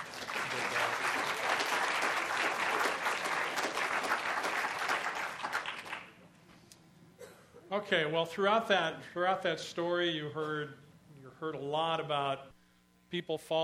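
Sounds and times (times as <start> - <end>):
audience applause: 0.0 - 6.2
speech: 7.8 - 10.8, 11.4 - 12.5, 13.1 - 13.6.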